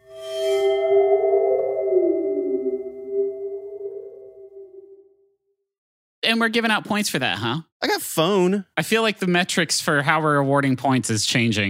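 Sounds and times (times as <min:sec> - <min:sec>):
waterphone metallic wobbling tone: 0:00.0 - 0:05.1
speech: 0:06.3 - 0:11.6.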